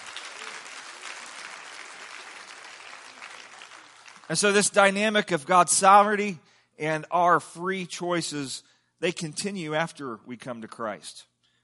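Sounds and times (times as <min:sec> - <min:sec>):
audience clapping hands: 0:00.0 - 0:05.0
speech: 0:04.3 - 0:11.3.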